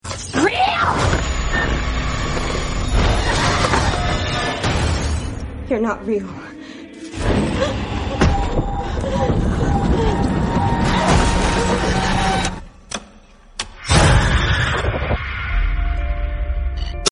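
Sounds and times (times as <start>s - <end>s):
horror movie ringtone: 0.5s - 12.9s, 13.8s - 17.0s.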